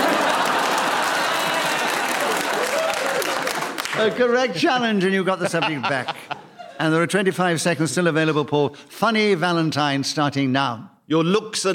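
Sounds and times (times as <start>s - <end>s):
laughter: 0.0s - 2.9s, 5.0s - 7.3s
audience applause: 0.0s - 4.3s
speech: 4.0s - 11.7s.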